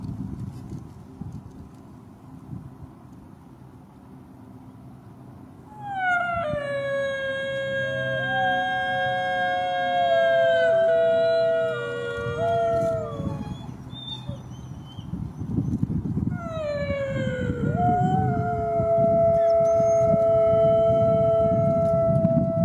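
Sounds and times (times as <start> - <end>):
pack of wolves howling in chorus: 5.7 - 14.4, 16.3 - 22.6.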